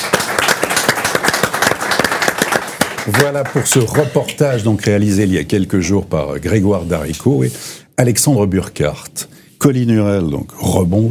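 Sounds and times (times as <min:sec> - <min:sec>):
audience applause: 0:00.0 - 0:04.6
speech: 0:03.1 - 0:11.0.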